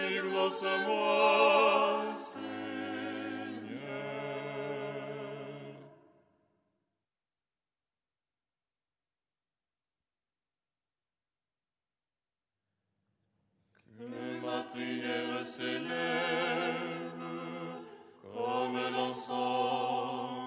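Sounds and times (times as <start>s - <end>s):
ensemble chanting lucernaire stichera: 0.0s - 6.1s, 13.9s - 20.4s.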